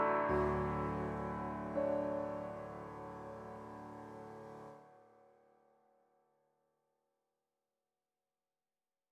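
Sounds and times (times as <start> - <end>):
piano: 0.0 - 5.4.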